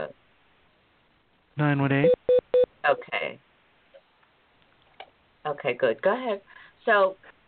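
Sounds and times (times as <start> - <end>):
speech: 1.6 - 3.5, 5.4 - 7.4
call-waiting beep on phone line: 2.0 - 2.7.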